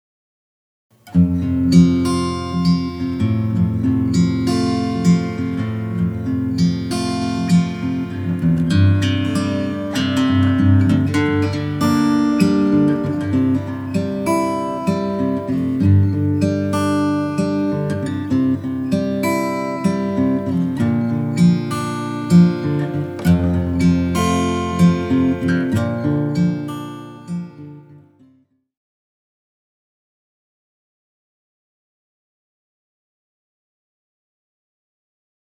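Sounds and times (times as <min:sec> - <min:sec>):
instrumental music: 0:01.0 - 0:28.0.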